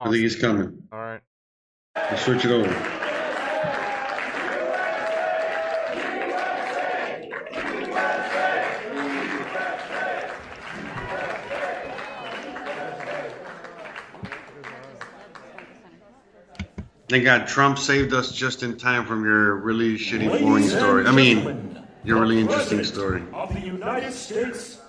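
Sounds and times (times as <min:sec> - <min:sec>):
speech: 0:00.0 - 0:01.3, 0:02.0 - 0:03.8, 0:17.1 - 0:24.8
crowd clapping: 0:02.0 - 0:16.9.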